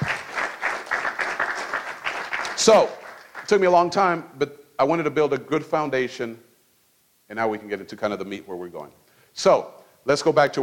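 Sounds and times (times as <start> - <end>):
audience applause: 0.0 - 3.6
speech: 2.6 - 6.5, 7.3 - 10.6.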